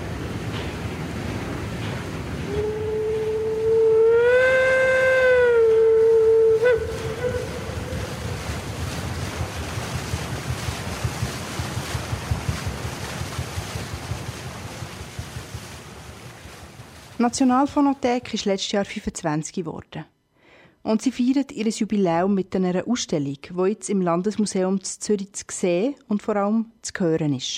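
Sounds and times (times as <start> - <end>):
wind: 0.0 - 17.7
water washing: 0.0 - 18.1
steamship horn blast on a lake: 2.4 - 8.8
speech: 17.2 - 20.1, 20.8 - 27.5.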